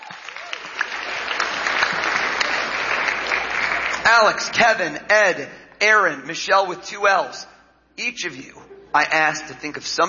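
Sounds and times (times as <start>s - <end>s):
audience applause: 0.0s - 4.3s
speech: 4.1s - 10.0s.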